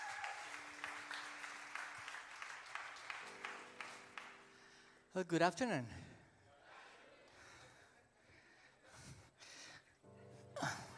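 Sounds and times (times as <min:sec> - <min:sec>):
church congregation applause welcoming a pastor: 0:00.0 - 0:04.9
speech: 0:05.2 - 0:06.1.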